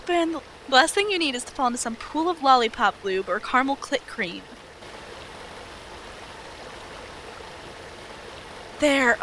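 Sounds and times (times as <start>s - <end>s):
waterfall: 0.0s - 9.2s
speech: 0.1s - 4.6s, 8.8s - 9.2s.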